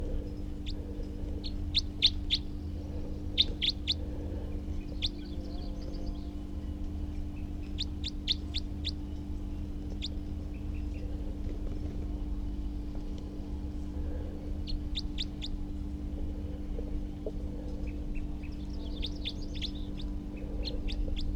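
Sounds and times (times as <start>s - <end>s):
steady low hum: 0.0s - 21.3s
wild male bird calling: 0.6s - 4.0s, 4.7s - 6.4s, 7.1s - 11.1s, 14.6s - 15.6s, 17.8s - 21.3s.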